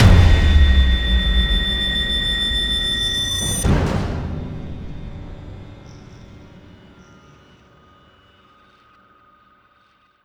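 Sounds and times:
ambient sting: 0:00.0 - 0:07.3.

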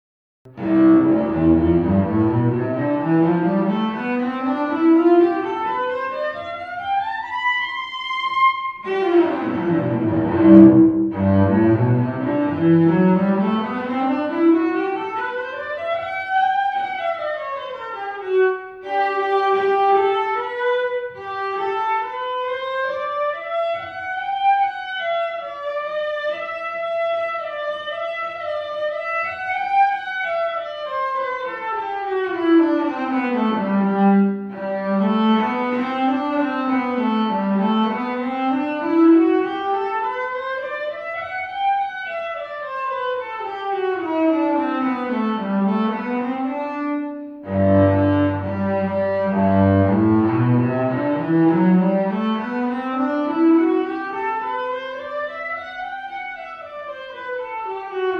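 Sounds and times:
cello playing scales: 0:00.5 - 0:58.1.

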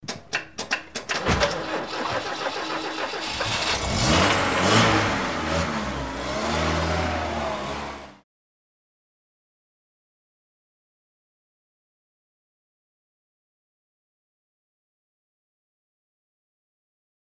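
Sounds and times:
truck engine starting: 0:00.0 - 0:08.2.

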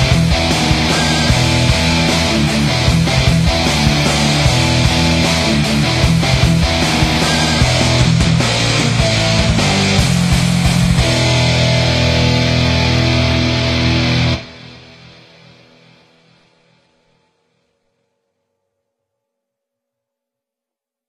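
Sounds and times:
neo rock background music: 0:00.0 - 0:17.0.

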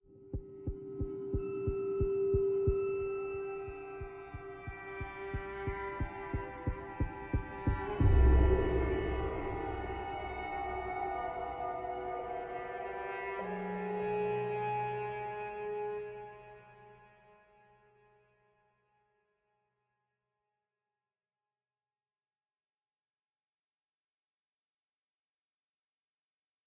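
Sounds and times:
string instrument: 0:00.1 - 0:19.4.

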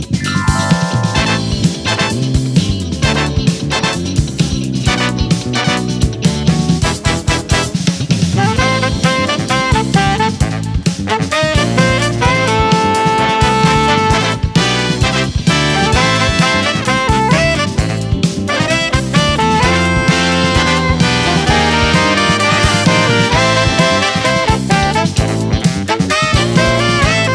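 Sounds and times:
funk remix with siren: 0:00.2 - 0:27.3.

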